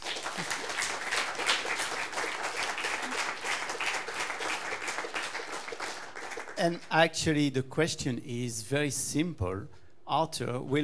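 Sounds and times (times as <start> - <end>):
audience applause: 0.0 - 6.6
speech: 6.6 - 10.8.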